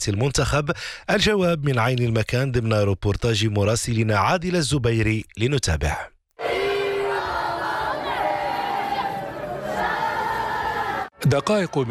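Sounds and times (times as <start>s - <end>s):
speech: 0.0s - 6.6s, 11.2s - 11.8s
stadium fans chanting in unison: 6.4s - 11.1s.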